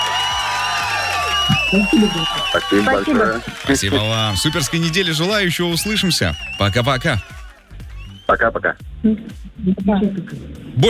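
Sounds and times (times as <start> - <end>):
high whoops and shouts: 0.0 - 7.6
crowd cheering and applauding sound effect: 0.0 - 8.4
speech: 1.7 - 7.4, 8.3 - 10.8.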